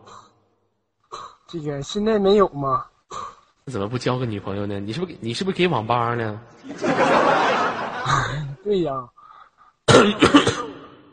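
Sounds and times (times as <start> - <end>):
speech: 1.5 - 2.9, 3.7 - 7.5, 8.1 - 9.2, 10.0 - 10.6
laughter: 6.6 - 8.6
loud harsh cough: 9.9 - 11.1.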